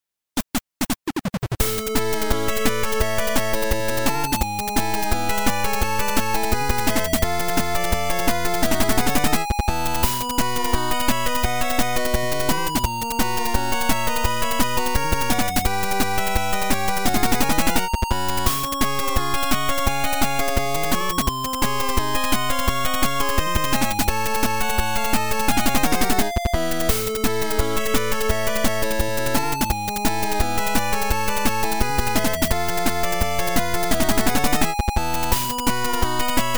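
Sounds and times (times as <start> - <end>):
eight-bit music: 1.6 - 36.5.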